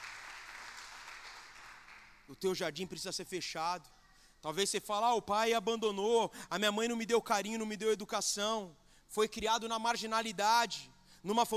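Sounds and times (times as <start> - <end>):
congregation applauding during a church service: 0.0 - 2.4
speech: 2.3 - 11.5.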